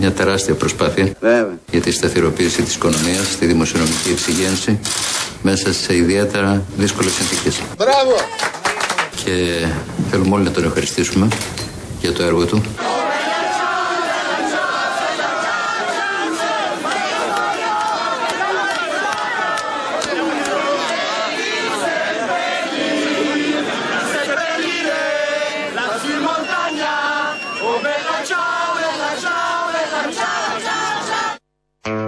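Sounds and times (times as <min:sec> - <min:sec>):
speech: 0:00.0 - 0:08.6, 0:09.2 - 0:12.9
huge Italian crowd singing and shouting celebrating Berlusconi's departure: 0:12.8 - 0:31.4.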